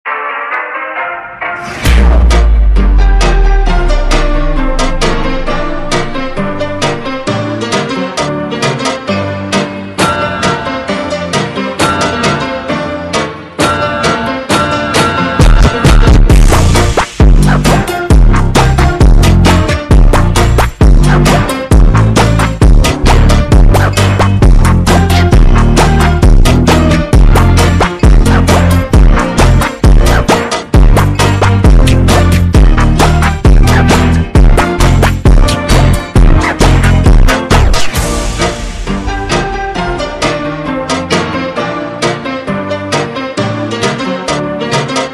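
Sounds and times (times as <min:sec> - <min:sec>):
ultra slowed funk instrumental: 0:00.1 - 0:45.1.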